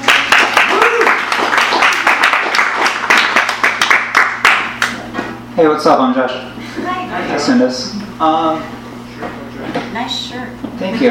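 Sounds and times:
audience applause: 0.0s - 5.0s
speech: 5.6s - 6.5s, 7.4s - 8.8s, 10.0s - 11.0s.

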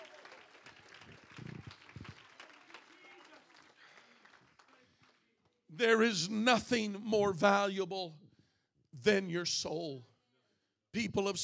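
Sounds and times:
audience clapping hands in praise: 0.0s - 5.6s
speech: 5.8s - 8.2s, 9.0s - 10.1s, 10.9s - 11.4s.

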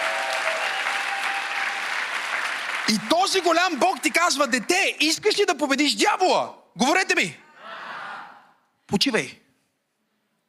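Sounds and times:
audience applause: 0.0s - 4.9s
speech: 2.9s - 7.4s, 8.9s - 9.4s.

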